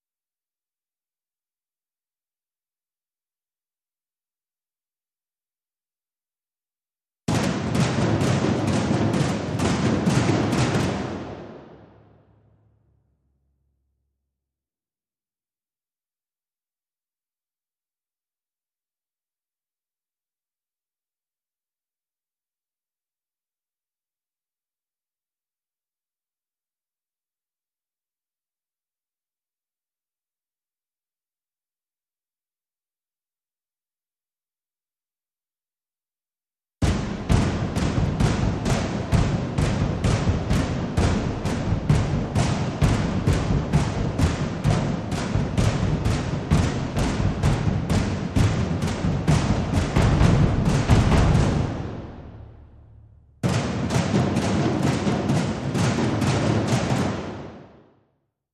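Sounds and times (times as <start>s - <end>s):
tom drums loop layer: 7.3s - 12.0s, 36.8s - 57.6s.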